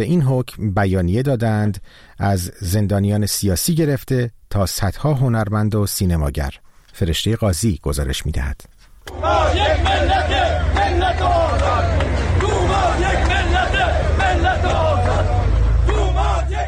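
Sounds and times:
speech: 0:00.0 - 0:11.9
retired social security pensioners chanting slogans at a protest in Ahvaz: 0:09.1 - 0:16.6.

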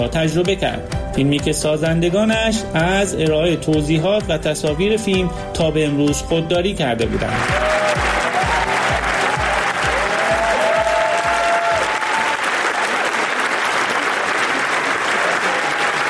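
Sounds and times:
speech: 0:00.0 - 0:08.0
audience applause at film premiere: 0:07.2 - 0:16.0.

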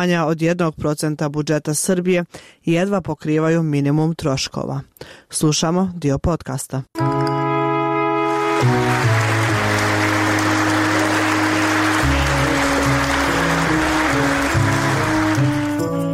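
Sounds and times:
speech: 0:00.0 - 0:07.3
held slowly shifting musical chords: 0:07.0 - 0:16.1
audience applauding actors after a theatre premiere in Belgrade: 0:08.3 - 0:16.0.

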